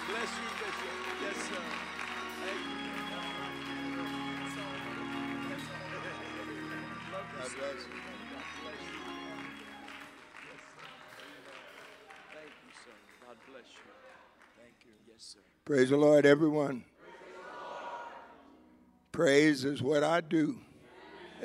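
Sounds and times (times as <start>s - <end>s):
audience applause: 0.0s - 14.6s
speech: 7.4s - 8.9s, 15.2s - 16.9s, 19.2s - 20.7s.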